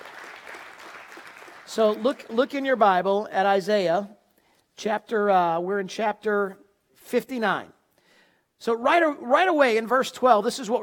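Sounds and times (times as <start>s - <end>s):
audience applause: 0.0s - 2.4s
speech: 1.8s - 4.2s, 4.8s - 7.8s, 8.6s - 10.8s.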